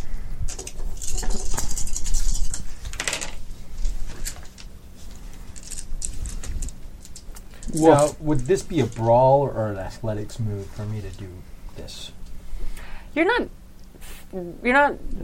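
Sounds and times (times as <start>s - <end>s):
dice rolling on a table: 1.0s - 3.4s
speech: 7.8s - 12.2s, 13.2s - 13.6s, 14.3s - 15.2s.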